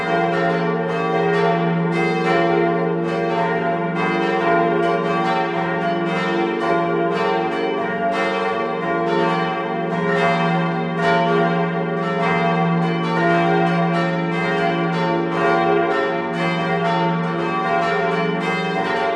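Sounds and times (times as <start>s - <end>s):
church bells ringing: 0.0s - 19.1s.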